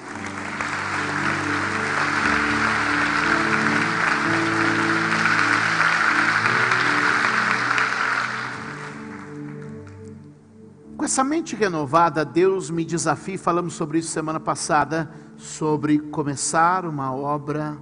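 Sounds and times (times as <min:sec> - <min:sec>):
audience applauding: 0:00.0 - 0:10.2
speech: 0:11.2 - 0:17.8.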